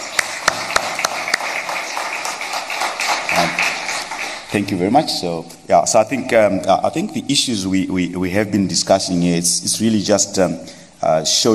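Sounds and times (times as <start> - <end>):
audience applause: 0.0 - 4.7
speech: 3.4 - 3.6, 4.5 - 11.5.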